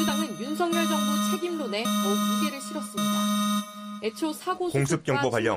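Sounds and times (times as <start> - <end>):
person speaking announcement on South Korean television: 0.0 - 3.1, 4.0 - 5.4
emergency alarm on South Korean television, harmonic-rich buzzing tone: 0.0 - 4.6.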